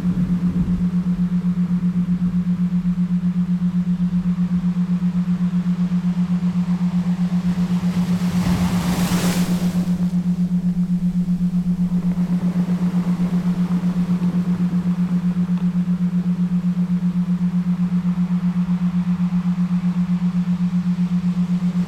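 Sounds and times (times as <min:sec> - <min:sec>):
7.83 Hz Schumann resonance isochronic tones: 0:00.0 - 0:21.8
relaxing ocean sounds: 0:05.5 - 0:16.9.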